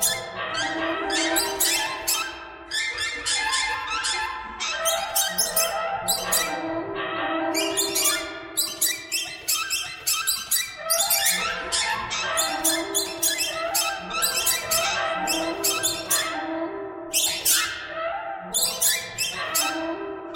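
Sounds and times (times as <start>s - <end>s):
many birds calling: 0.0s - 16.5s, 17.1s - 20.3s.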